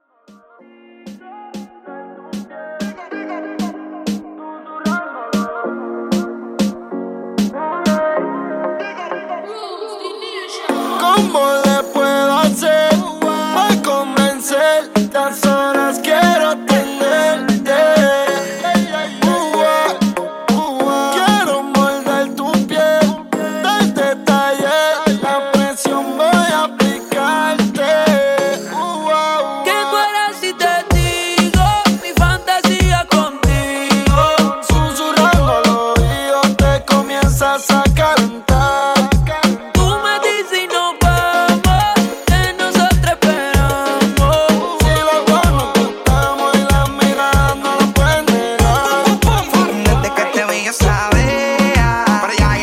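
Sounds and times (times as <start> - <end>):
reggaeton music: 0.0 - 52.6.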